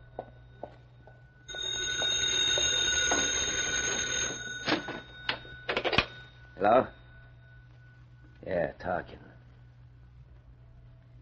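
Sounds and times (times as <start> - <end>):
old-fashioned telephone bell ringing: 1.4 - 7.7
speech: 6.6 - 7.0, 8.5 - 9.3.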